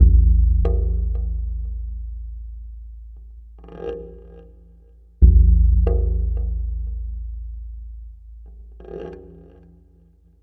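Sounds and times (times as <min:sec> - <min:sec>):
tribal wave drum: 0:00.0 - 0:04.4, 0:05.2 - 0:08.8.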